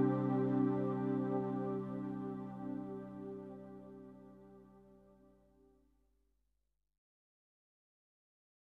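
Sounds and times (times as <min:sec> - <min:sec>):
acoustic instrumental praise music: 0:00.0 - 0:03.8.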